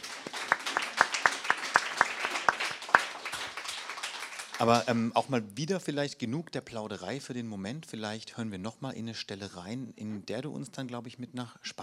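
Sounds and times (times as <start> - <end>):
short audience applause: 0.0 - 5.1
speech: 4.6 - 11.8.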